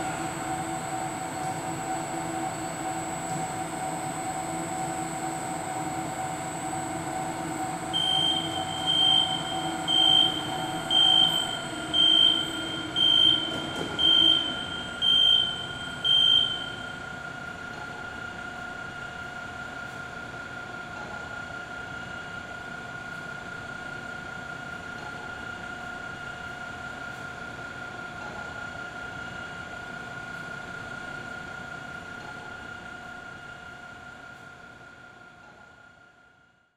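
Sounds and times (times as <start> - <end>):
airport X-ray machine conveyor belt running with luggage: 0.0 - 34.1
airport metal detector alarm beeps: 7.9 - 16.8.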